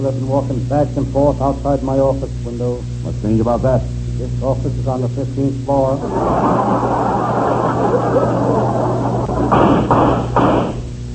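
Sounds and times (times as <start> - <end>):
speech: 0.0 - 7.1, 9.5 - 10.4
laughter: 6.0 - 9.6
gunshots outside the office: 9.4 - 10.8.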